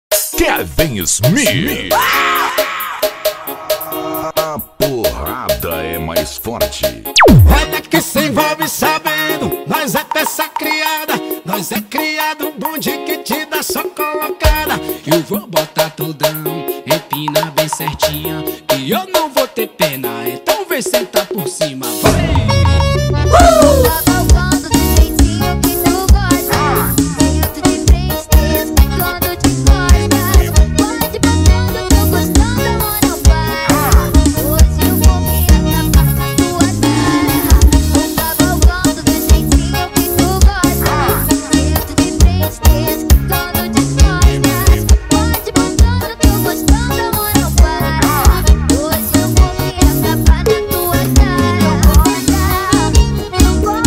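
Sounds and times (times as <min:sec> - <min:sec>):
forro funk paredao music: 0:00.1 - 0:53.8.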